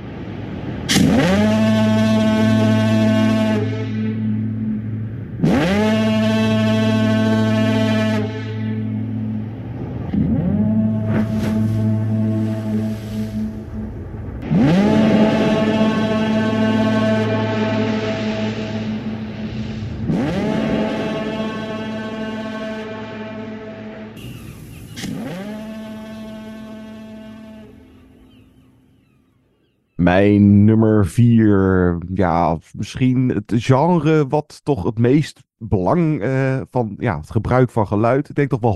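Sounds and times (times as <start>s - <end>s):
foghorn blasts from The Lighthouse: 0.1s - 28.8s
speech: 30.1s - 38.7s.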